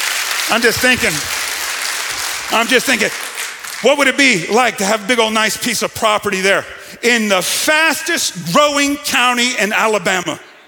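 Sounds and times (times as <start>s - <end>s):
audience hand clap of praise: 0.0s - 5.0s
speech: 0.5s - 1.4s, 2.5s - 3.2s, 3.8s - 10.5s.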